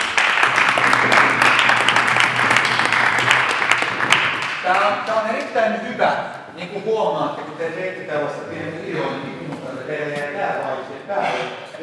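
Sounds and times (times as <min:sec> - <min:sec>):
audience applause: 0:00.0 - 0:05.3
speech: 0:06.6 - 0:11.8.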